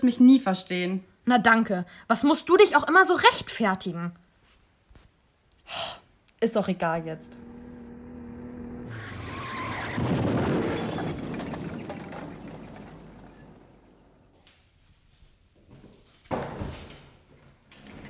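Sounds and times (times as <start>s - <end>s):
speech: 0.0s - 4.2s, 5.7s - 7.5s
car engine: 7.2s - 14.3s
scraping skidding tires: 7.3s - 14.3s
car crashing into a street lamp: 9.9s - 14.0s.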